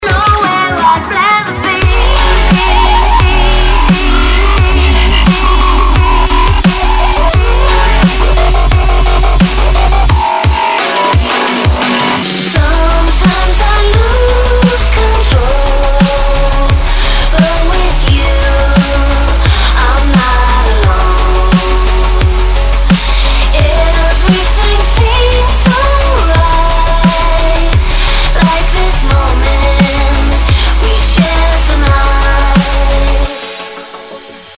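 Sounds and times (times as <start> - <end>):
dubstep with vocals: 0.0 - 34.5.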